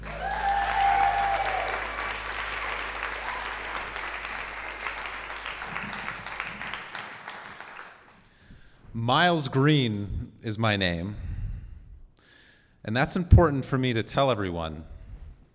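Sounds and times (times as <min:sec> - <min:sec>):
audience applause: 0:00.0 - 0:08.3
speech: 0:09.0 - 0:11.3, 0:12.8 - 0:14.9.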